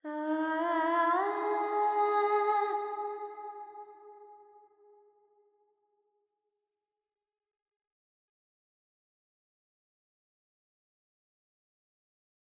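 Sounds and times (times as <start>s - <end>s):
Carnatic female vocal alap in Phrygian mode: 0.0s - 3.2s.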